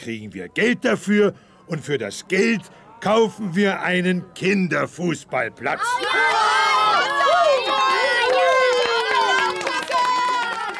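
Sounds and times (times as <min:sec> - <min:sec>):
speech: 0:00.0 - 0:06.5
crowd cheering and clapping: 0:05.8 - 0:10.7.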